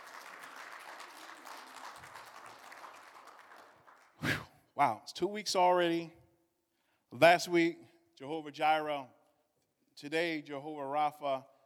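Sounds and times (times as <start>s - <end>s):
audience clapping: 0.0s - 4.2s
speech: 4.8s - 6.2s, 7.1s - 9.2s, 10.0s - 11.5s.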